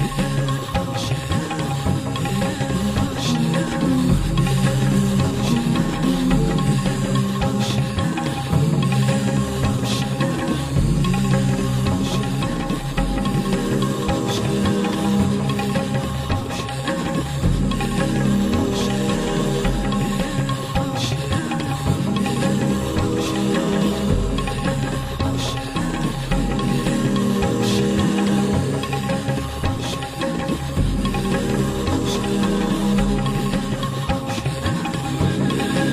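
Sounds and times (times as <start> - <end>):
tablas: 0.0 - 35.9.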